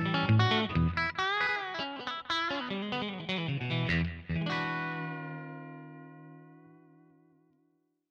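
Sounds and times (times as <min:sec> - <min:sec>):
rockabilly guitar through a 2x12 amplifier cabinet: 0:00.0 - 0:07.4.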